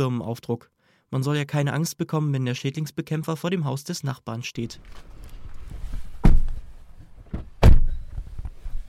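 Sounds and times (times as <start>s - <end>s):
speech: 0.0s - 5.2s
people climbing into a car, shuffling and rustling: 4.7s - 8.8s
heavy car door thumps: 6.2s - 8.2s.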